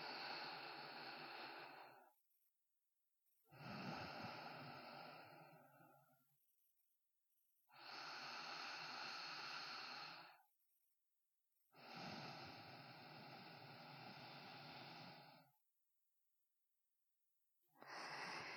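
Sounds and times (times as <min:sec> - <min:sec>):
sparse sleeping breaths: 0:00.0 - 0:02.2, 0:03.5 - 0:06.2, 0:07.8 - 0:10.5, 0:11.8 - 0:15.6, 0:17.8 - 0:18.5.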